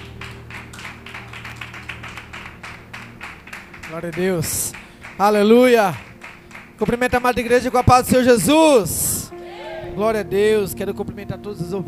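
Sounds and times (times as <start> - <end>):
audience clapping: 0.0 - 8.8
speech: 3.9 - 6.1, 6.8 - 9.0, 10.0 - 11.8.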